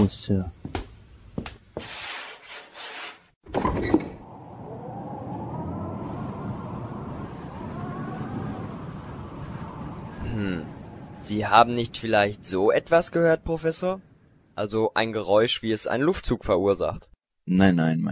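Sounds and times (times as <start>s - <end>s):
speech: 0.0s - 0.6s, 11.3s - 18.1s
windows being opened with a scraping slide and squeaks: 1.8s - 4.3s.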